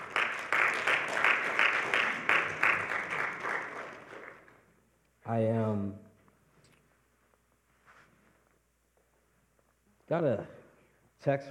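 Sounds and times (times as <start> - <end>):
audience hand clapping: 0.0 - 4.8
speech: 5.3 - 6.0, 10.1 - 10.6, 11.2 - 11.4.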